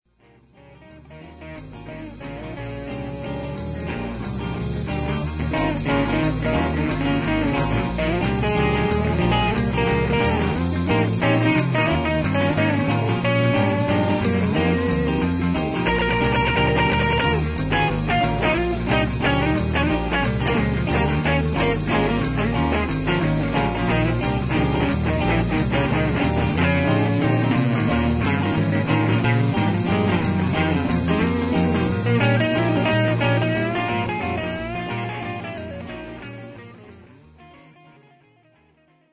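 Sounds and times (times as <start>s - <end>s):
blues music: 0.1s - 39.1s.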